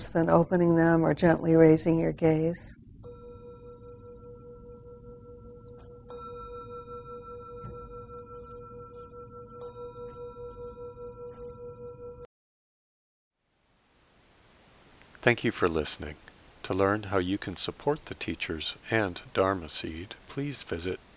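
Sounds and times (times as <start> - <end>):
speech: 0.1 - 2.8, 15.2 - 21.1
meditation bell ringing: 3.0 - 12.3.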